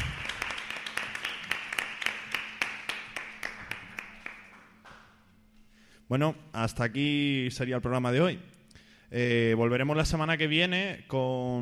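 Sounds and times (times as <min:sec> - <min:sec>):
audience applause: 0:00.0 - 0:05.0
speech: 0:06.1 - 0:11.5.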